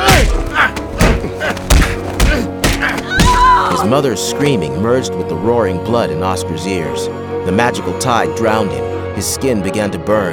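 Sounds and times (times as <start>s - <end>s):
heavy punches thudding into a body: 0.0s - 4.0s
speech: 3.8s - 10.3s.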